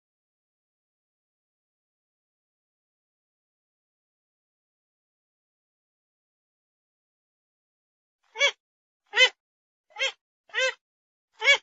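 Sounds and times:
Grey-headed swamphen nasal call notes: 0:08.4 - 0:10.8, 0:11.4 - 0:11.6.

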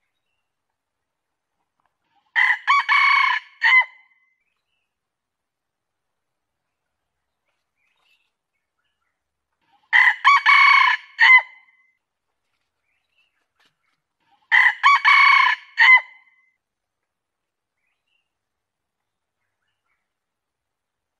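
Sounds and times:
junglefowl crowing: 0:02.4 - 0:04.0, 0:09.9 - 0:11.6, 0:14.5 - 0:16.2.

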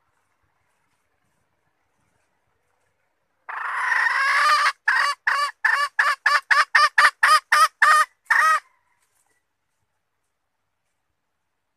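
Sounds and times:
red junglefowl hen calling and cackling: 0:03.4 - 0:09.5.

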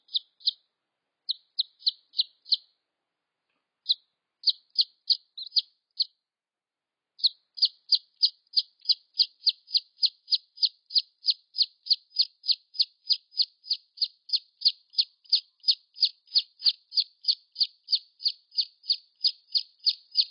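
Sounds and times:
red junglefowl chick peeps: 0:00.0 - 0:00.6, 0:01.3 - 0:02.7, 0:03.8 - 0:06.1, 0:07.2 - 0:20.2.

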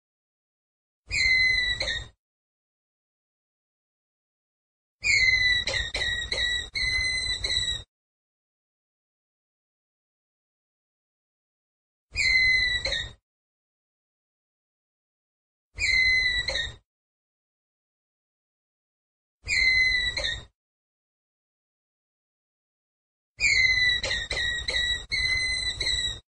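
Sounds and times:
ground squirrel whistled call: 0:01.1 - 0:02.1, 0:05.0 - 0:07.9, 0:12.2 - 0:13.2, 0:15.8 - 0:16.8, 0:19.5 - 0:20.5, 0:23.4 - 0:26.2.

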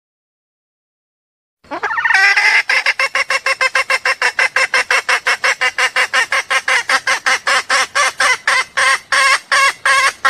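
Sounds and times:
junglefowl clucking: 0:01.7 - 0:10.2.

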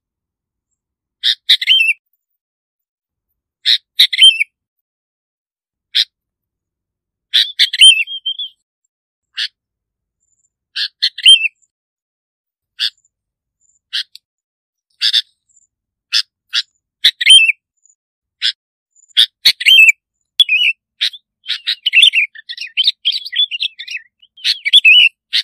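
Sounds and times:
bulbul singing: 0:01.2 - 0:02.0, 0:03.7 - 0:04.5, 0:07.3 - 0:08.6, 0:10.8 - 0:11.7, 0:16.1 - 0:17.6, 0:19.0 - 0:25.4.

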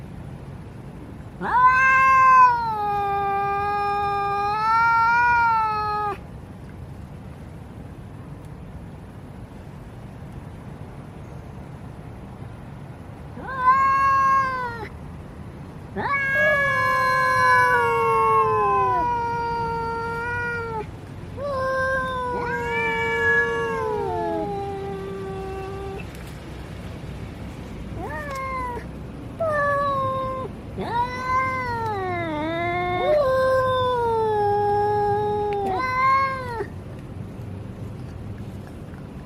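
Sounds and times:
domestic cat yowling and wailing: 0:01.4 - 0:06.2, 0:13.4 - 0:14.9, 0:16.0 - 0:26.1, 0:28.0 - 0:36.7.

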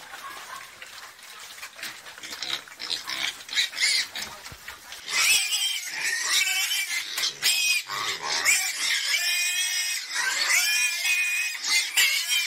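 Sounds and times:
pig squealing: 0:02.2 - 0:04.3, 0:05.0 - 0:12.4.

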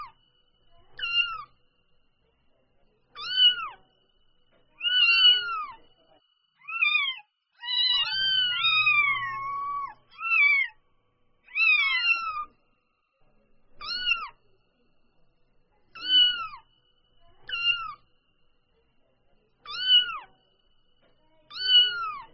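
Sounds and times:
domestic cat kitten mewing: 0:01.0 - 0:01.5, 0:03.2 - 0:03.8, 0:04.8 - 0:05.8, 0:06.6 - 0:10.8, 0:11.5 - 0:12.5, 0:13.8 - 0:14.4, 0:16.0 - 0:16.6, 0:17.4 - 0:18.0, 0:19.7 - 0:20.3, 0:21.5 - 0:22.3.

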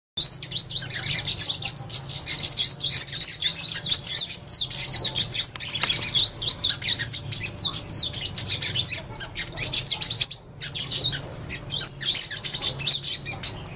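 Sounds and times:
sunbird singing: 0:00.2 - 0:13.7.

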